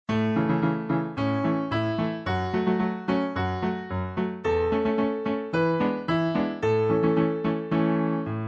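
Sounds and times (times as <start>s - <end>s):
instrumental music: 0.1s - 8.4s.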